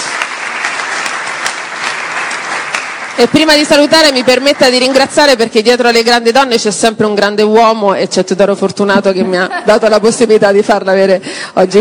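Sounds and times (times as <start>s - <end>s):
audience applause: 0.0s - 5.4s
speech: 3.2s - 11.7s.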